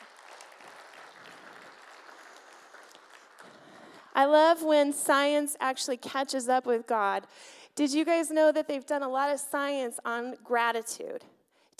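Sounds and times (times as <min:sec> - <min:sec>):
audience clapping: 0:00.0 - 0:04.7
speech: 0:04.2 - 0:11.7.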